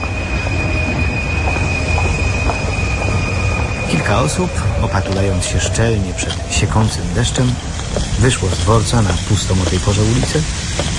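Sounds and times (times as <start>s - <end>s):
London Underground train rumbling along the rails: 0.0s - 10.9s
high-pitched wheel squeal: 0.0s - 10.9s
speech: 4.1s - 10.9s.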